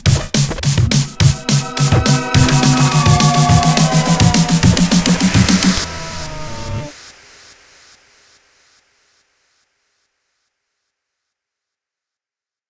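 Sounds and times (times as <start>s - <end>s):
small mini bass drum: 0.0s - 6.9s.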